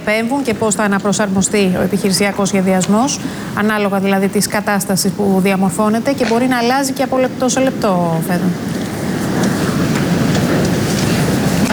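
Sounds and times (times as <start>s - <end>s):
speech: 0.0s - 8.8s
wildfire roaring: 0.0s - 11.7s.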